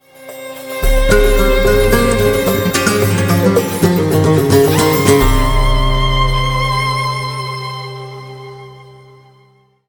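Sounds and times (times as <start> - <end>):
guitar SMS tone: 0.8 - 8.0.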